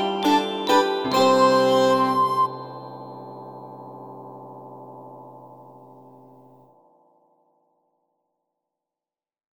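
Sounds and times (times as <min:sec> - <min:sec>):
person singing: 0:00.0 - 0:02.8.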